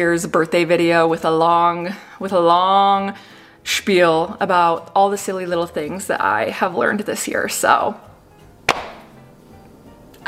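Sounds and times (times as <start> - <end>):
speech: 0.0 - 8.1
confetti popper bang: 8.7 - 9.1.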